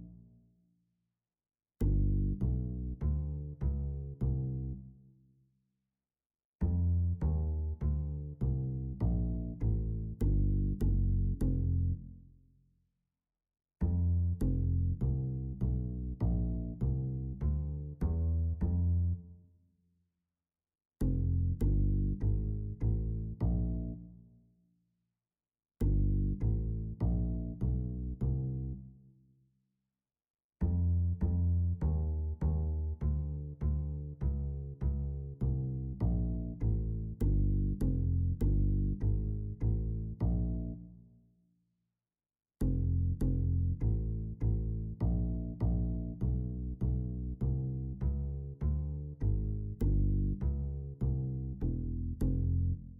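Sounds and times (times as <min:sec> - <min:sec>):
four-beat jazz bass groove: 0:01.8 - 0:04.7, 0:06.7 - 0:12.1, 0:13.8 - 0:19.1, 0:21.0 - 0:24.0, 0:25.8 - 0:28.6, 0:30.6 - 0:40.8, 0:42.6 - 0:52.9.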